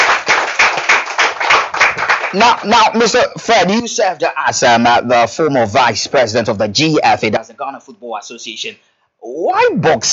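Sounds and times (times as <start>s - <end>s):
audience applause at a sports event welcoming a former football association vice president: 0.0s - 2.6s
speech: 2.3s - 10.1s.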